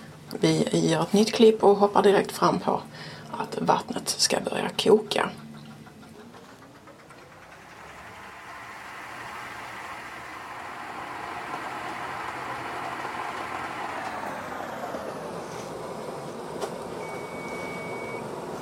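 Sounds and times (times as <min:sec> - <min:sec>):
speech: 0:00.4 - 0:05.4
cooking thermometer beep inside a pot: 0:17.0 - 0:18.2.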